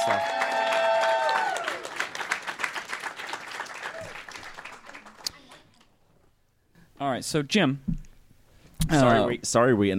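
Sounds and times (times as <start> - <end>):
speech: 0.0 - 0.4, 7.0 - 7.9, 8.9 - 9.9
audience applause: 0.0 - 5.8.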